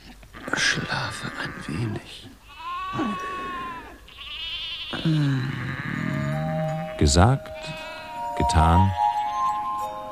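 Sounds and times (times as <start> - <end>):
sheep bleating: 0.3 - 7.8
speech: 5.0 - 5.6, 7.0 - 7.8, 8.5 - 9.0.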